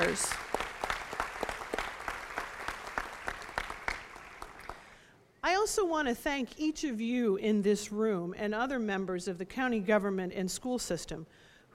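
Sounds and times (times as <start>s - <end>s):
speech: 0.0s - 0.5s, 5.7s - 11.7s
audience applause: 0.0s - 4.9s.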